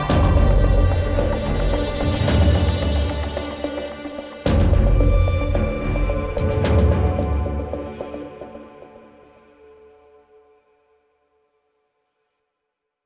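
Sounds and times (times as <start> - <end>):
suspense music: 0.0 - 9.7.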